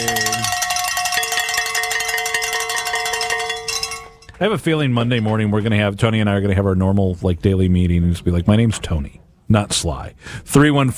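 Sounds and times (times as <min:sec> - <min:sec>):
bells ringing: 0:00.0 - 0:04.4
speech: 0:04.4 - 0:10.9.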